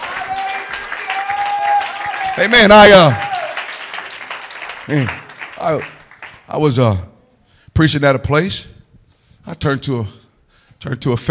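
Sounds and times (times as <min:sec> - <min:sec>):
audience clapping hands: 0:00.0 - 0:06.6
speech: 0:02.4 - 0:03.2, 0:04.9 - 0:05.9, 0:06.5 - 0:07.1, 0:07.8 - 0:08.7, 0:09.4 - 0:10.2, 0:10.8 - 0:11.3.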